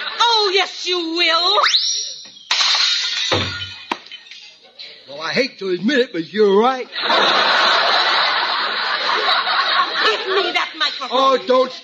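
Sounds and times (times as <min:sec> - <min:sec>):
laughter: 0:00.0 - 0:00.6, 0:06.8 - 0:11.8
speech: 0:00.5 - 0:01.8, 0:05.3 - 0:07.6, 0:10.3 - 0:11.8
dishes smashing as tablecloth is pulled: 0:02.3 - 0:04.5.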